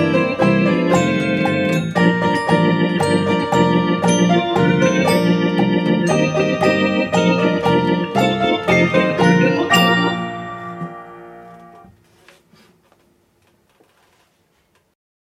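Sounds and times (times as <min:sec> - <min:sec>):
Christmas song: 0:00.0 - 0:11.9.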